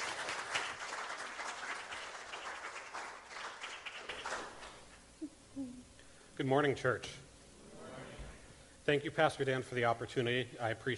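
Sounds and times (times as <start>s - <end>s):
church congregation clapping at a morning service: 0.0s - 5.0s
speech: 6.4s - 7.2s, 8.9s - 10.9s.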